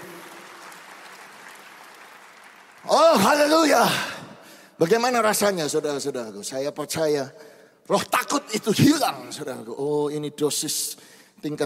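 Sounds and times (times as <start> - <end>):
audience applause: 0.0 - 4.2
speech: 2.9 - 4.1, 4.8 - 11.6.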